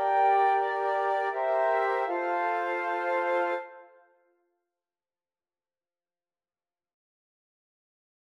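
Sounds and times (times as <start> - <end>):
flute quartet: 0.0 - 4.0.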